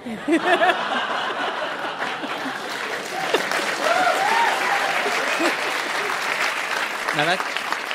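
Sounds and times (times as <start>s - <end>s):
laughter: 0.0s - 6.6s
speech: 0.1s - 1.1s, 7.2s - 7.6s
audience applause: 0.4s - 7.9s.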